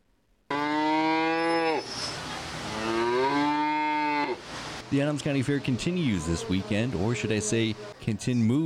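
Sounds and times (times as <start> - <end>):
cattle mooing in the beef barn at the Adams County Fair in Nebraska: 0.5 - 1.9, 2.7 - 4.4, 5.6 - 8.0
speech: 4.9 - 8.6.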